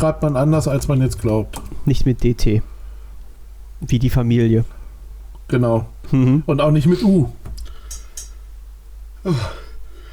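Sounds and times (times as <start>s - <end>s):
speech: 0.0s - 2.7s, 3.8s - 4.8s, 5.5s - 7.4s, 9.2s - 9.6s
throat clearing: 9.2s - 9.7s.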